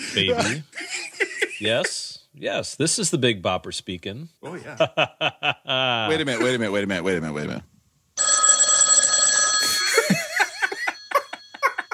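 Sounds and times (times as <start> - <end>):
speech: 0.1 - 0.8, 1.6 - 7.7
telephone bell ringing: 8.2 - 11.9.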